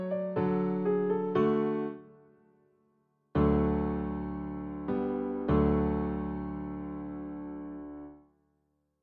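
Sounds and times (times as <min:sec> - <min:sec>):
piano allegro: 0:00.0 - 0:02.0, 0:03.4 - 0:08.1.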